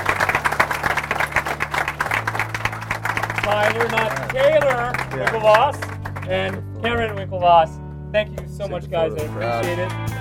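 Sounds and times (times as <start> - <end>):
crowd clapping: 0.0 - 7.4
low music hum: 0.0 - 10.1
speech: 3.5 - 10.1.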